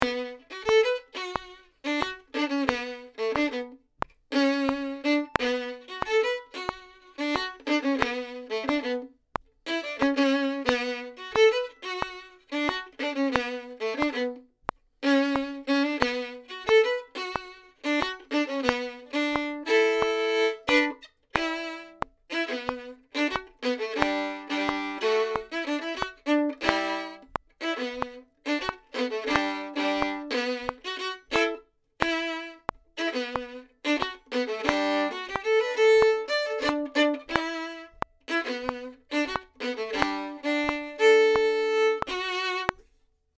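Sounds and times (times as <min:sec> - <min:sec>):
violin: 0:00.0 - 0:43.0.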